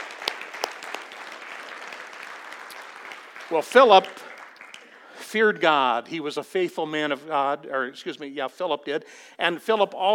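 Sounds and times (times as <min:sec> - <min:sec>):
audience applause: 0:00.0 - 0:05.2
speech: 0:03.5 - 0:04.2, 0:05.3 - 0:10.1.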